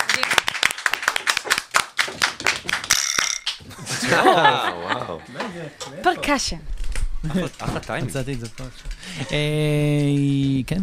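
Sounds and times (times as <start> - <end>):
hand clapping: 0.0 - 3.6
laughter: 3.7 - 5.8
speech: 5.7 - 10.8.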